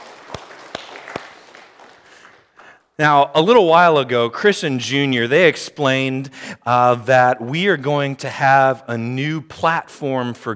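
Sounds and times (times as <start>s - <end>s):
audience applause: 0.0s - 2.7s
speech: 3.0s - 10.5s.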